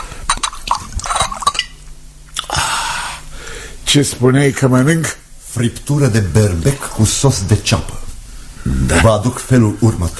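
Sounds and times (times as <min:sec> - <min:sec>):
liquid poured into a glass: 0:00.4 - 0:01.8
speech: 0:03.9 - 0:08.0, 0:08.6 - 0:10.1.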